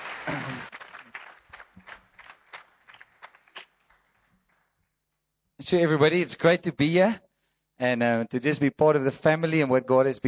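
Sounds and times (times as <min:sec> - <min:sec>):
round of applause for the band: 0:00.0 - 0:04.8
speech: 0:05.7 - 0:07.2, 0:07.8 - 0:10.2.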